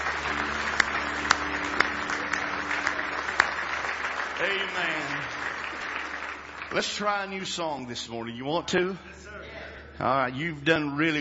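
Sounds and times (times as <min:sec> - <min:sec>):
audience hand clapping: 0:00.0 - 0:08.0
speech: 0:04.4 - 0:05.5, 0:06.7 - 0:09.4, 0:10.0 - 0:11.1.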